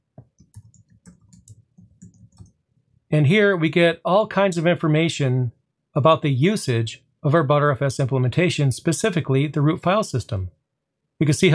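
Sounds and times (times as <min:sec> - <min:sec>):
computer keyboard clicks typing a terminal command: 0:00.2 - 0:02.6
speech: 0:03.1 - 0:10.6, 0:11.2 - 0:11.5.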